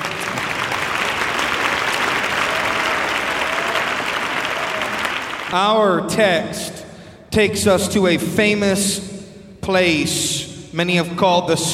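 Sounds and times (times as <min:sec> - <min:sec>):
audience clapping: 0:00.0 - 0:05.7
speech: 0:05.5 - 0:11.7.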